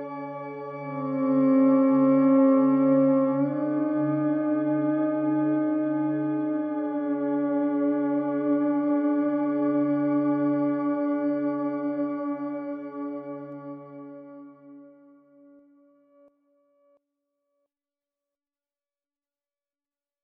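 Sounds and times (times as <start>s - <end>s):
theremin: 0.0s - 14.2s.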